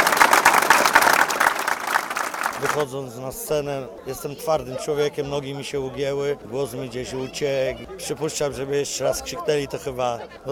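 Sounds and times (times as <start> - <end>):
audience applause at a stage event: 0.0 - 2.9
speech: 2.6 - 10.5.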